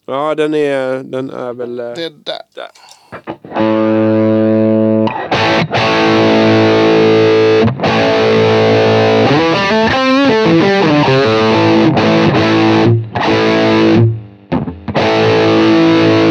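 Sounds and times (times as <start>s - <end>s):
speech: 0.1s - 4.2s
heavily distorted electric guitar through a boosted amp playing sustained chords: 3.5s - 16.2s.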